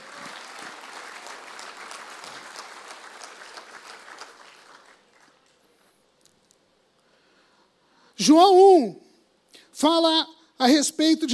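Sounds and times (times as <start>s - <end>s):
audience applause: 0.0s - 5.6s
speech: 8.2s - 9.0s, 9.8s - 11.3s.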